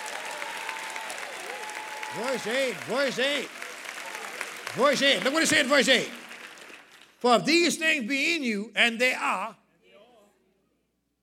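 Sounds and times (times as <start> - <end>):
audience clapping: 0.0 - 7.8
speech: 2.1 - 3.6, 4.7 - 6.2, 7.2 - 9.6.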